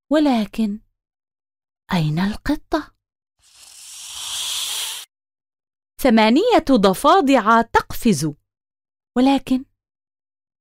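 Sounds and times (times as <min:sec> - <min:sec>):
speech: 0:00.1 - 0:00.8, 0:01.9 - 0:02.9, 0:06.0 - 0:08.4, 0:09.2 - 0:09.7
crawling snakes hissing: 0:03.4 - 0:05.1.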